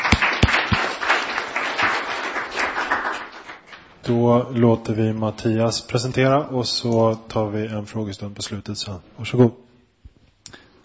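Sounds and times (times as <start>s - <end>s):
audience applause: 0.0s - 3.9s
speech: 4.1s - 9.6s.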